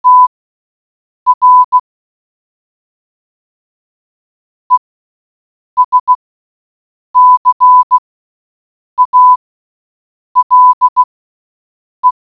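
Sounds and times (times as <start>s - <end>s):
morse code beeps: 0.0s - 0.3s, 1.3s - 1.8s, 5.8s - 6.2s, 7.2s - 8.0s, 9.0s - 9.4s, 10.4s - 11.1s.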